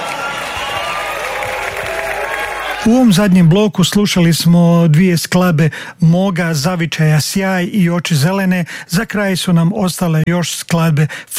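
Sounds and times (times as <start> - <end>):
audience applause and cheering at a live concert: 0.0 - 3.4
speech: 2.8 - 11.3.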